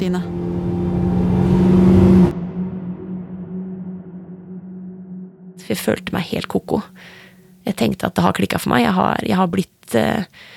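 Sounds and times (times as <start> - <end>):
speech: 0.0 - 0.7, 5.7 - 10.5
ambulance driving off with engine revving: 0.0 - 3.2.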